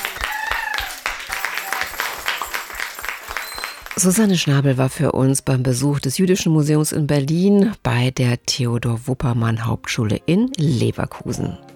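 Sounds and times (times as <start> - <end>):
higher tonal cries or whoops: 0.0 - 1.9
group clapping: 0.0 - 4.4
speech: 4.0 - 11.7.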